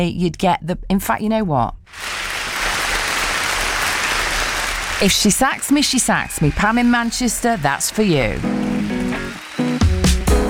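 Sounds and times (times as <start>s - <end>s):
speech: 0.0s - 2.1s, 5.0s - 8.6s
studio audience applause: 1.9s - 10.4s.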